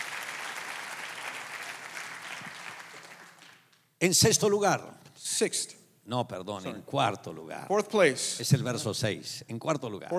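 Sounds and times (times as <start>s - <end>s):
church congregation applause during a Spanish-language sermon: 0.0s - 3.9s
speech: 4.0s - 10.1s.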